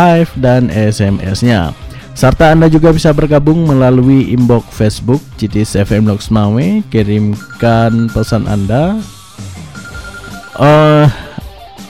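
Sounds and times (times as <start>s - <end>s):
speech: 0.0s - 9.5s, 10.6s - 11.2s
telephone ringing as a listener calls in to a radio show: 7.2s - 11.0s.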